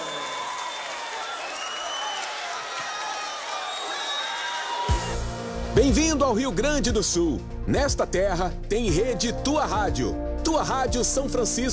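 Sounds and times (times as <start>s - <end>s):
audience applauding: 0.0s - 5.3s
speech: 5.8s - 11.7s.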